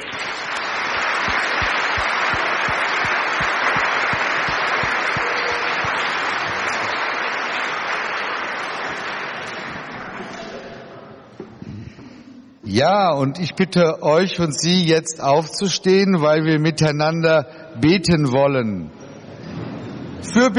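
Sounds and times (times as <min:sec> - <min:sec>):
audience applauding: 0:00.0 - 0:10.1
speech: 0:12.8 - 0:19.0, 0:20.2 - 0:20.5.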